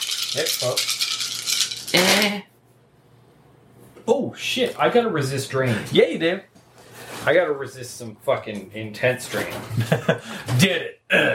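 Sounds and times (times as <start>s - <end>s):
dice rattling: 0.0s - 2.3s
speech: 0.3s - 1.0s, 1.9s - 2.5s, 4.3s - 6.5s, 7.2s - 11.3s.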